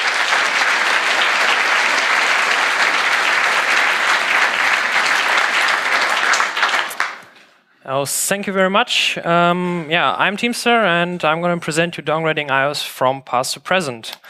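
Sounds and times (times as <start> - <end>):
audience applause: 0.0 - 7.3
speech: 7.9 - 14.2.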